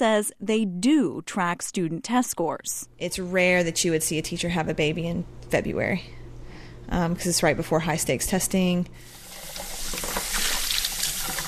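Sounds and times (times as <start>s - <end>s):
speech: 0.0s - 6.2s, 6.9s - 9.1s, 9.9s - 10.2s
water running at a kitchen sink: 9.0s - 11.4s.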